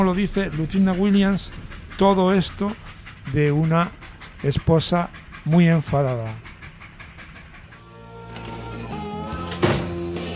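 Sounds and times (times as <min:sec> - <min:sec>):
speech: 0:00.0 - 0:06.5
door slam: 0:09.5 - 0:10.1.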